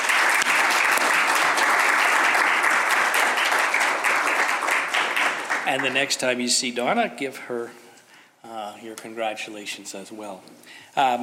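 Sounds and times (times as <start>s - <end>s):
audience applause: 0.0s - 6.2s
speech: 5.7s - 7.8s, 8.8s - 11.2s.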